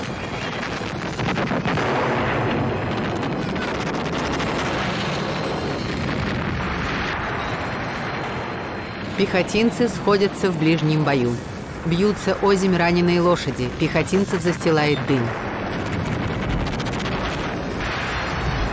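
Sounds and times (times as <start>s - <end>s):
artillery cannon blasts in battle: 0.2s - 9.2s, 15.1s - 18.7s
speech: 9.2s - 15.5s.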